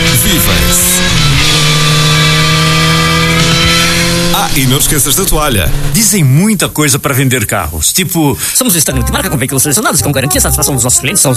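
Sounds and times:
motorcycle engine running loud and steady: 0:00.0 - 0:06.0
speech: 0:00.3 - 0:01.2, 0:04.5 - 0:11.3.

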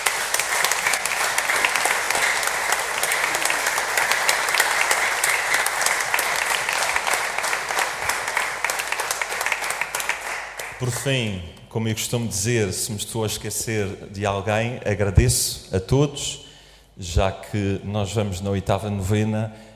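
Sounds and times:
sustained audience applause: 0:00.0 - 0:11.1
speech: 0:10.8 - 0:16.4, 0:17.0 - 0:19.7.

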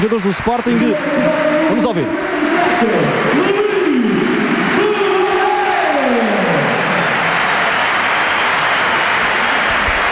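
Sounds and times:
speech: 0:00.0 - 0:04.6
stadium crowd applauding substituted player at Alvalade: 0:00.0 - 0:10.0.

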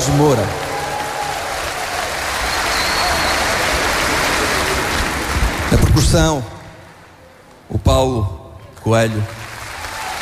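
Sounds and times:
audience applause for the band: 0:00.0 - 0:07.2, 0:09.2 - 0:10.1
speech: 0:00.1 - 0:00.6, 0:06.0 - 0:06.6, 0:07.7 - 0:09.4.

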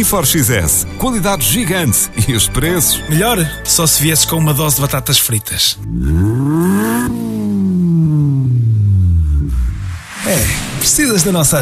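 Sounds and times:
speech: 0:00.0 - 0:07.3, 0:10.3 - 0:11.5
car engine revving: 0:05.8 - 0:10.8.

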